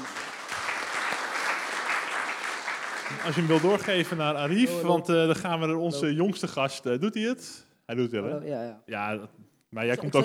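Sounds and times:
audience applause: 0.0s - 4.6s
speech: 3.1s - 10.2s.

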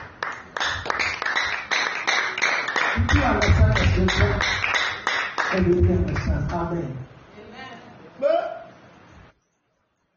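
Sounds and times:
audience clapping hands: 0.0s - 6.8s
speech: 5.6s - 7.1s.

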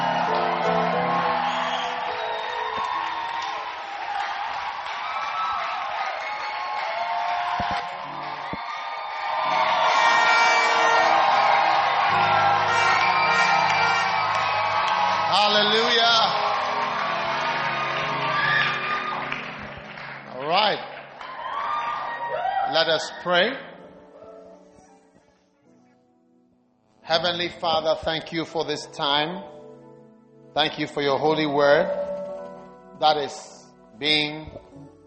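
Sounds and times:
audience applauding: 0.0s - 23.2s
speech: 22.9s - 23.7s, 27.2s - 29.6s, 30.6s - 32.0s, 33.0s - 34.6s.

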